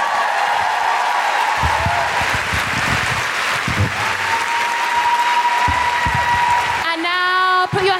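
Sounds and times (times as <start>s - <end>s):
audience clapping: 0.0s - 7.9s.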